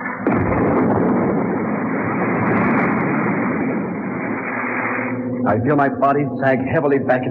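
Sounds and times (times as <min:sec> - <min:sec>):
retro rockets firing with roar: 0:00.2 - 0:05.4
speech: 0:05.5 - 0:07.2.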